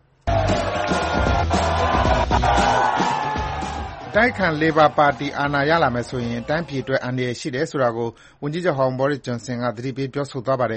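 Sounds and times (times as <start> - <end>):
Conservative party members shouting and cheering for Boris Johnson at London rally: 0.3 - 7.3
speech: 4.2 - 10.7.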